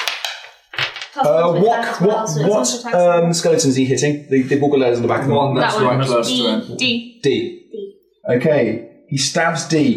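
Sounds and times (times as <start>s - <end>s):
dice scattering: 0.0s - 1.1s
speech: 1.2s - 9.9s.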